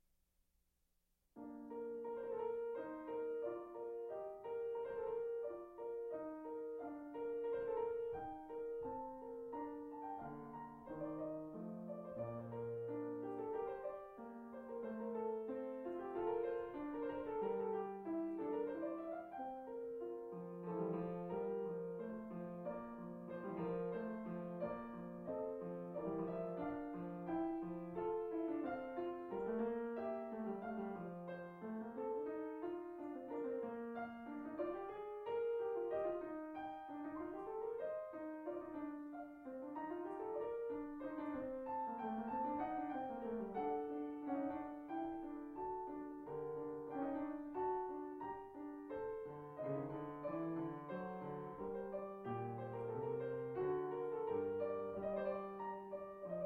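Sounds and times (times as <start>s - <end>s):
piano: 1.3s - 56.4s.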